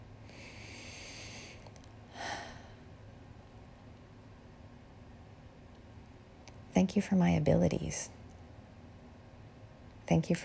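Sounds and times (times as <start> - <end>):
deep breathing during a guided gratitude meditation: 0.2 - 2.9
speech: 6.8 - 8.2, 10.1 - 10.4.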